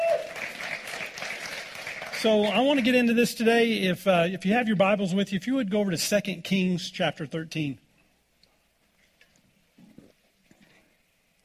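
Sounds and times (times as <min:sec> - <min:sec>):
audience hand clap applause: 0:00.0 - 0:03.0
speech: 0:02.2 - 0:07.8.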